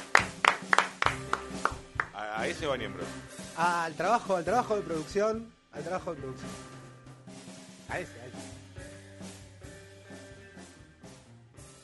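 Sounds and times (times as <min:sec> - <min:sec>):
spontaneous applause: 0:00.0 - 0:02.3
speech: 0:02.4 - 0:06.7, 0:07.9 - 0:08.5.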